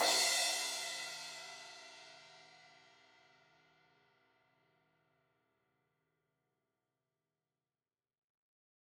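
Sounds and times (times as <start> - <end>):
16-inch crash cymbal hit on the edge: 0.0 - 1.8.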